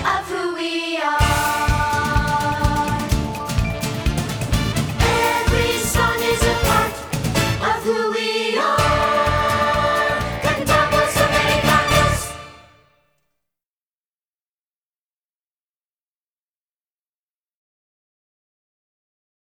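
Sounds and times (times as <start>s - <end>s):
vocal singing: 0.0s - 12.8s.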